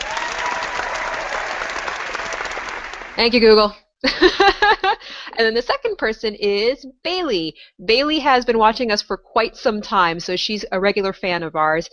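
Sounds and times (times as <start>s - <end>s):
audience applause: 0.0s - 3.4s
speech: 3.2s - 11.9s
laughter: 4.1s - 5.4s.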